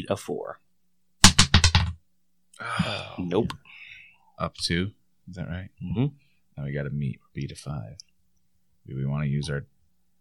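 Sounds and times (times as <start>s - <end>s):
speech: 0.0s - 0.6s, 2.6s - 3.7s, 4.4s - 8.1s, 8.8s - 9.7s
die clattering across a hard surface: 1.2s - 2.0s.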